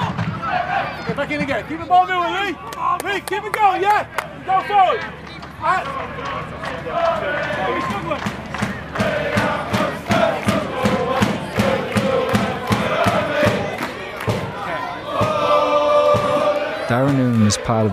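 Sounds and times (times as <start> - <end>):
football crowd roaring and chanting in a stadium: 0.0 - 17.9
speech: 1.3 - 8.4, 16.9 - 17.9
rhythmic claps or drum beats: 2.7 - 17.8
crowd singing a chant: 5.8 - 17.9.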